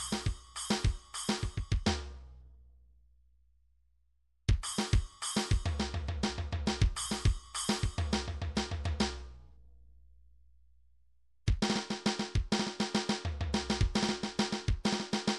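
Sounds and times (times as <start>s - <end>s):
midi drums: 0.0s - 2.1s, 4.5s - 9.2s, 11.5s - 15.3s.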